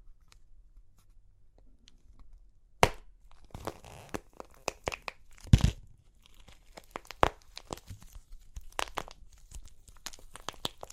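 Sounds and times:
crunchy clay cracking and crunching: 0:02.8 - 0:10.9.

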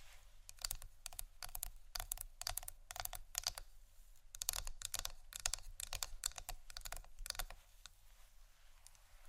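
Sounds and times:
scratchy tapping clicks: 0:00.5 - 0:03.6, 0:04.3 - 0:07.5.

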